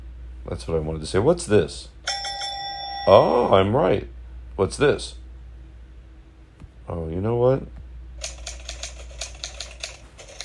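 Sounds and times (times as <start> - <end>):
speech: 0.5 - 2.0, 3.1 - 5.2, 6.9 - 7.8
old typewriter typing sound effect: 8.2 - 10.4.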